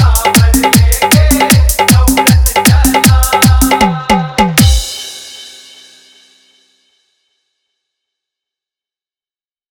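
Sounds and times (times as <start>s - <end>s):
dholak bass dance mix: 0.0s - 5.6s.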